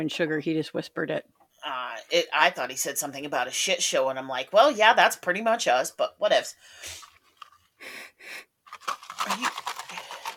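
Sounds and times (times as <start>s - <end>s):
speech: 0.0s - 7.1s, 7.8s - 9.7s
person sniffing a drink: 6.8s - 7.2s, 7.8s - 8.5s, 9.5s - 10.3s.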